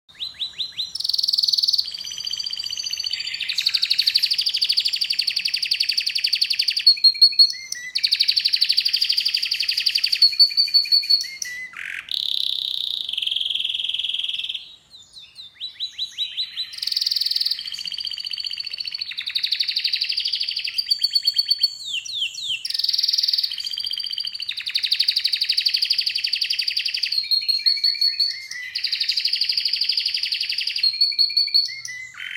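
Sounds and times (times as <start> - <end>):
canary song with rapid rolling trills and slurred notes: 0.1 - 32.3.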